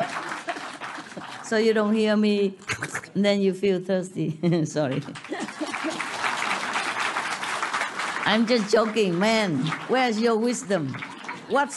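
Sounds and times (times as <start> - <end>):
laughter: 0.0 - 1.3, 4.9 - 6.8
crowd clapping: 0.0 - 2.0, 4.9 - 11.7
speech: 1.5 - 5.3, 8.2 - 11.7.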